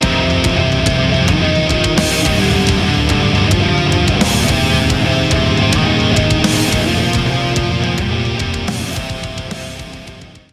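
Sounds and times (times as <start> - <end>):
musical stinger: 0.1 - 9.7.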